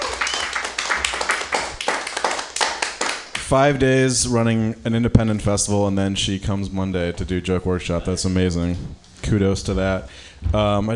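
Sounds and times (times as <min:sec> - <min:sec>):
audience applause: 0:00.0 - 0:03.4
speech: 0:03.5 - 0:10.9.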